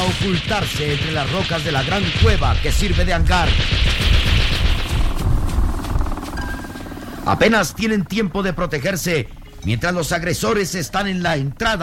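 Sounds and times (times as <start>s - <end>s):
gunfire sound effect for a surprise attack in a radio drama: 0.0s - 7.0s
speech: 0.1s - 4.5s, 7.2s - 11.8s.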